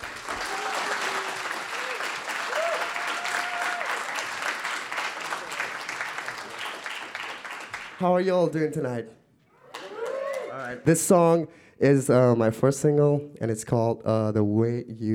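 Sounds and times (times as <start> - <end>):
audience round of applause: 0.0 - 8.0, 9.6 - 10.8
speech: 8.0 - 9.2, 10.6 - 15.1.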